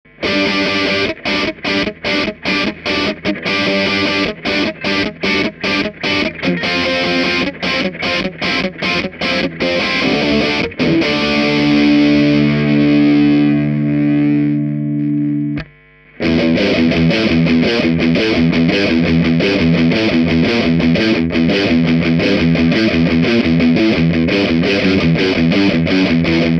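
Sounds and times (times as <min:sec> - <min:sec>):
distortion: 0:00.0 - 0:26.5.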